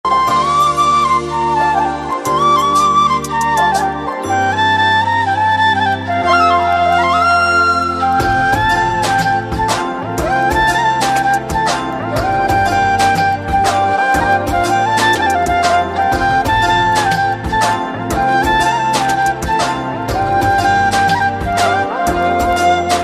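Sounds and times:
flute ringtone: 0:00.0 - 0:23.0.

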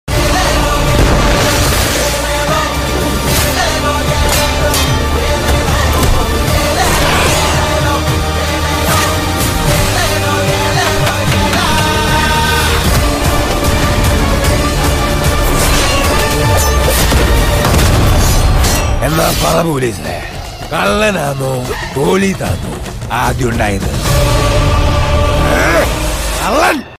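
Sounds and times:
trailer background music ringtone: 0:00.1 - 0:26.9.

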